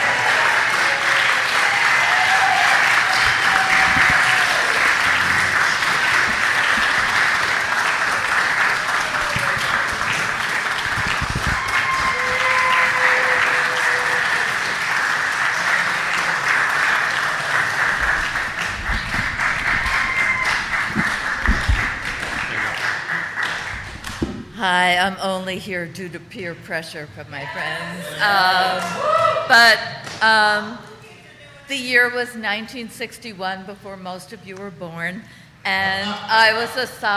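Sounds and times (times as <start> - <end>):
crowd applauding: 0.0 - 24.5
faint whistles and whoops: 11.4 - 14.2, 19.8 - 21.0
speech: 24.9 - 30.9, 31.7 - 37.1.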